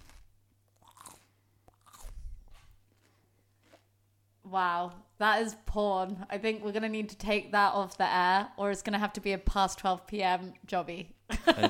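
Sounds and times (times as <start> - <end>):
crunching bite into raw celery: 0.0 - 3.9
speech: 4.5 - 11.6
laughter: 11.3 - 11.6.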